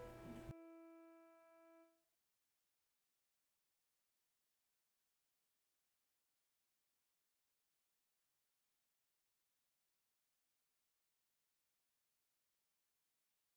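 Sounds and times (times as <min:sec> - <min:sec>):
alto: 0:00.0 - 0:01.9.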